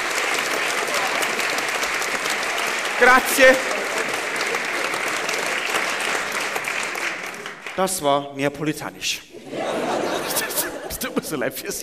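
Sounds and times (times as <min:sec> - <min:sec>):
audience clapping: 0:00.0 - 0:08.1
speech: 0:03.0 - 0:03.8, 0:07.8 - 0:09.8, 0:11.2 - 0:11.8
laughter: 0:03.0 - 0:05.6, 0:09.3 - 0:11.8.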